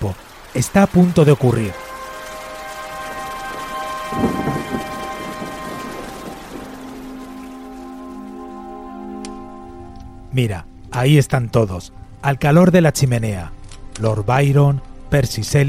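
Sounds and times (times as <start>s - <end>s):
speech: 0.0s - 1.8s, 10.4s - 15.6s
heavy rain: 0.0s - 11.0s
sustained musical tones: 1.2s - 12.9s
rolling thunder: 3.5s - 7.5s.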